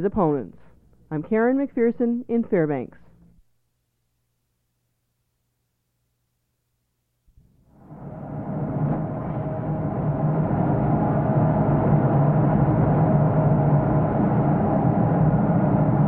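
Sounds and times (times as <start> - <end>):
speech: 0.0 - 3.0
metal smelting furnace and exhaust system roaring: 7.6 - 16.0.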